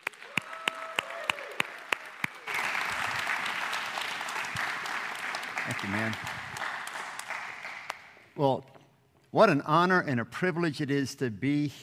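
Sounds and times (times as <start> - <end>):
congregation clapping welcoming a guest speaker: 0.0 - 8.3
speech: 5.7 - 6.4, 8.4 - 8.7, 9.3 - 11.8.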